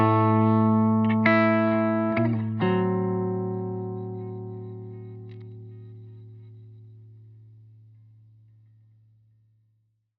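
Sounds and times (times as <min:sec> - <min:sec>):
2021 semi-hollow mahogany and maple electric guitar: 0:00.0 - 0:06.6.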